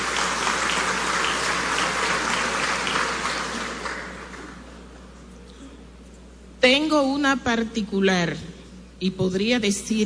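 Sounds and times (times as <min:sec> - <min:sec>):
audience applause: 0:00.0 - 0:04.8
speech: 0:06.6 - 0:10.0.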